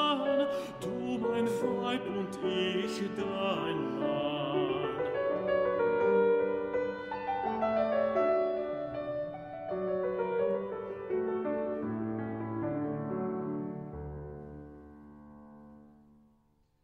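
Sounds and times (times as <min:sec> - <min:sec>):
solo voice singing a song: 0:00.0 - 0:05.4
piano accompaniment: 0:00.0 - 0:16.4.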